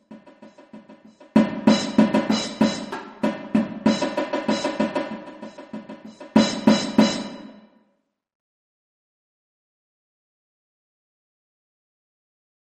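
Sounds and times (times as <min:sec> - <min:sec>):
drums playing in session: 0:00.0 - 0:07.6.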